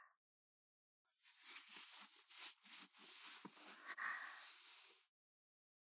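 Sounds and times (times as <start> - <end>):
ear massage with breasts: 1.3 - 5.0.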